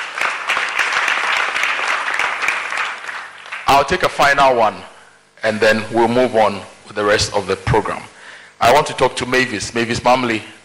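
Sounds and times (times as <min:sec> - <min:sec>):
audience round of applause: 0:00.0 - 0:03.9
speech: 0:03.8 - 0:10.6.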